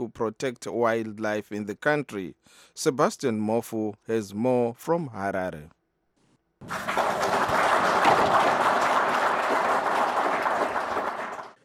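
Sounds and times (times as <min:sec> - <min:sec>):
speech: 0:00.0 - 0:05.8, 0:06.6 - 0:07.2
Zimbabwean officials clapping: 0:06.6 - 0:11.6.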